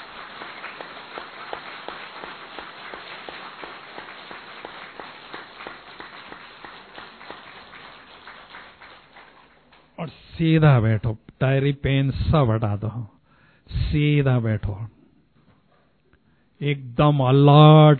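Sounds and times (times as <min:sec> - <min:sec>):
audience applause: 0:00.0 - 0:10.0
speech: 0:10.0 - 0:15.0, 0:16.6 - 0:17.9.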